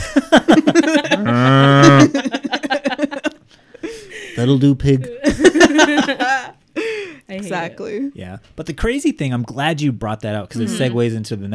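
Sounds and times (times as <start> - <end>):
laughter: 0.0 - 7.0, 10.6 - 11.0
speech: 0.2 - 1.4, 4.5 - 5.2, 7.5 - 11.5
cow mooing: 1.2 - 2.1.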